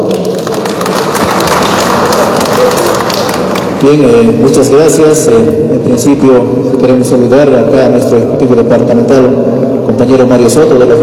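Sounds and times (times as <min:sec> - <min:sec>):
loud applause: 0:00.0 - 0:04.2
speech: 0:03.8 - 0:11.0.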